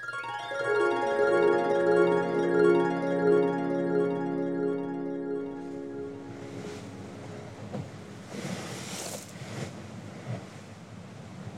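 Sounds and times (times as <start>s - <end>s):
harp glissando: 0.0s - 8.4s.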